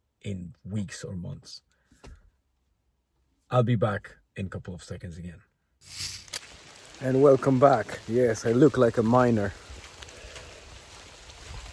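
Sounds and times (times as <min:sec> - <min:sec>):
speech: 0:00.2 - 0:01.7, 0:03.5 - 0:06.2, 0:07.0 - 0:09.6
rain falling: 0:05.9 - 0:11.7.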